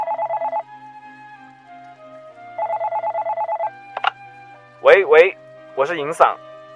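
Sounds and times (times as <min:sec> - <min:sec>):
telephone ringing: 0:00.0 - 0:00.7, 0:02.5 - 0:04.1
soft sustained music: 0:00.0 - 0:06.7
sharp clicks: 0:04.0 - 0:04.2
speech: 0:05.0 - 0:06.5.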